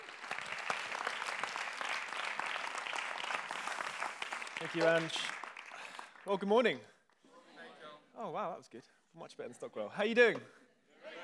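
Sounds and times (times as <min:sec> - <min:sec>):
audience applauding a speaker coming onto the stage at a service: 0:00.0 - 0:06.3
speech: 0:04.6 - 0:05.4, 0:06.2 - 0:06.9, 0:08.2 - 0:10.6.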